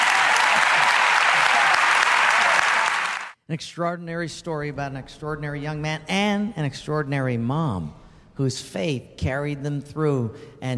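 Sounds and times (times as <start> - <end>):
crowd applauding: 0.0 - 3.4
speech: 3.5 - 10.7.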